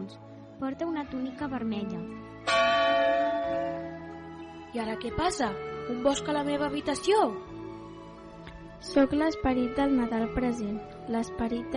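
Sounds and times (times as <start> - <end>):
speech: 0.1 - 2.7, 4.7 - 7.6, 8.8 - 11.7
clock striking one o'clock: 2.5 - 4.0.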